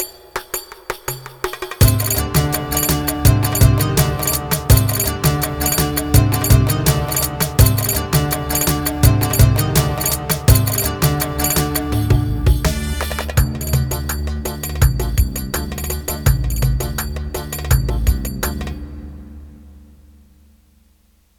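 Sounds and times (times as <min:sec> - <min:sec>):
Roland GW-8 keyboard rhythm pattern: 0:01.8 - 0:18.7.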